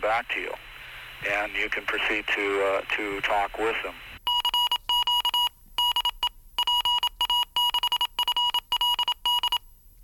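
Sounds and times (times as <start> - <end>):
speech: 0.0 - 4.1
Morse code beeps: 4.3 - 9.7.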